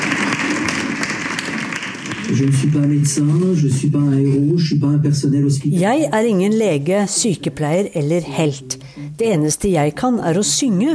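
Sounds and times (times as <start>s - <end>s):
neighbours clapping from balconies: 0.0s - 3.6s
speech: 2.3s - 10.9s.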